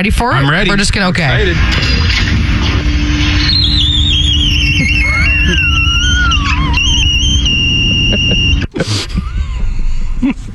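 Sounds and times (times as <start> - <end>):
speech: 0.0 - 2.3, 8.8 - 9.0, 10.2 - 10.5
steady low rumble: 0.0 - 10.5
glass door squeaking: 1.6 - 8.7
laughter: 3.5 - 10.5.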